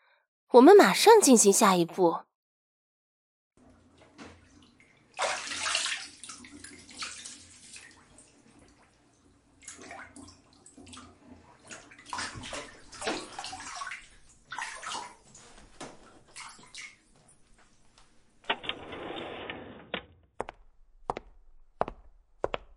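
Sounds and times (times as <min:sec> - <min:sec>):
speech: 0:00.5 - 0:02.3
water running and splashing while rinsing something: 0:05.2 - 0:08.1, 0:09.6 - 0:17.1.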